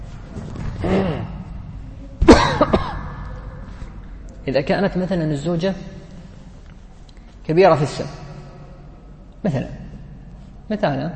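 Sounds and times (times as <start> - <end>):
person coughing: 2.2 - 3.3
speech: 4.5 - 6.0, 7.5 - 8.2, 9.4 - 9.8, 10.7 - 11.1.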